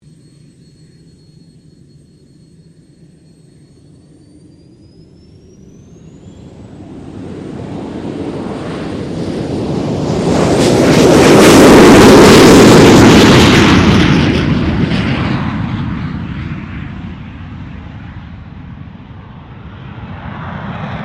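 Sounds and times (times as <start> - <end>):
Cessna A-37B Dragonfly jet fighter bomber taking off: 0.0 - 21.0.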